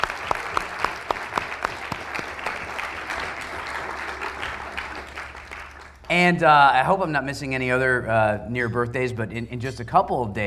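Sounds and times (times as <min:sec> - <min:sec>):
audience applause: 0:00.0 - 0:06.1
speech: 0:06.1 - 0:10.4.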